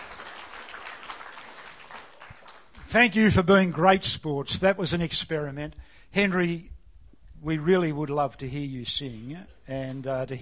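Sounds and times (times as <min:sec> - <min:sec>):
crowd clapping: 0:00.0 - 0:03.0
speech: 0:02.9 - 0:06.7, 0:07.4 - 0:10.4.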